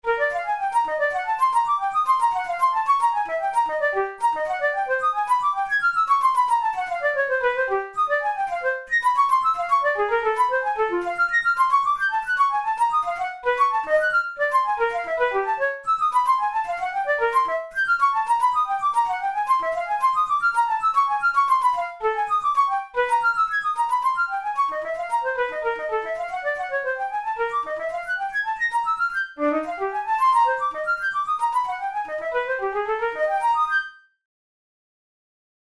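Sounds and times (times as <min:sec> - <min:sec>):
solo flute studies: 0:00.0 - 0:34.1.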